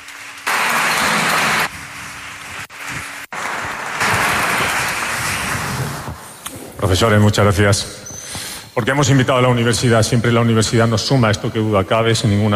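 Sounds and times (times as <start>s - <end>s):
audience applause: 0.0s - 1.7s, 2.7s - 6.4s
speech: 6.8s - 8.0s, 8.8s - 12.5s.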